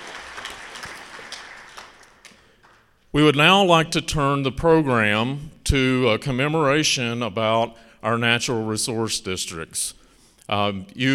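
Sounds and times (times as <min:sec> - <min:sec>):
audience applause: 0:00.0 - 0:02.9
speech: 0:03.1 - 0:11.1.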